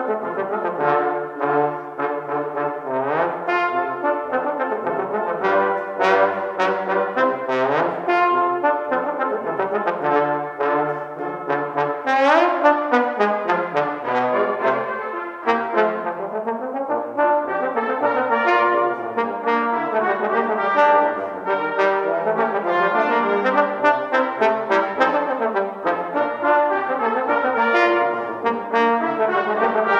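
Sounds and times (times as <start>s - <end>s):
trombone: 0.0s - 29.9s.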